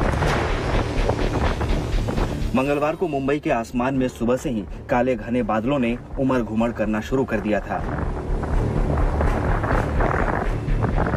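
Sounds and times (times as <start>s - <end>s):
strong wind roaring at the seashore: 0.0s - 2.6s, 6.8s - 11.1s
speech: 2.6s - 8.2s.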